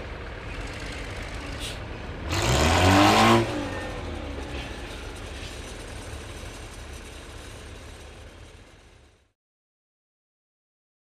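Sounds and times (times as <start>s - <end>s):
crane drill rattling heavily: 0.2s - 9.3s.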